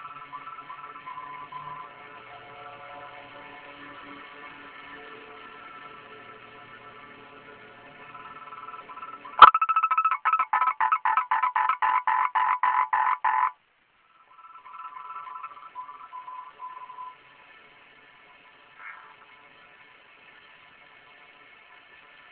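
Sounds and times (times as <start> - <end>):
frog calling in rapid pulsed croaks: 8.1 - 17.0.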